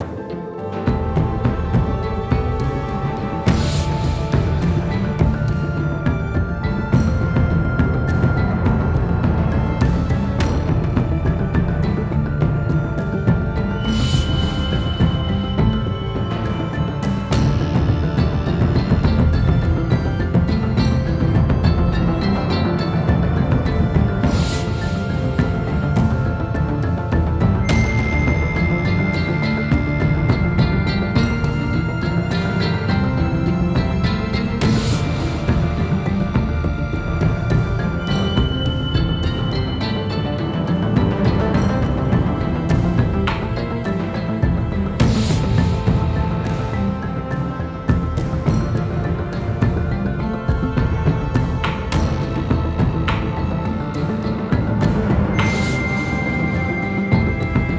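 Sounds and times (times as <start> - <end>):
action music loop: 0.0 - 57.7.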